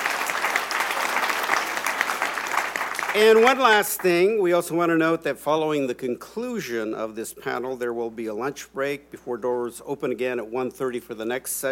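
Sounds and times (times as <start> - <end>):
audience applause: 0.0 - 3.9
speech: 3.1 - 11.6.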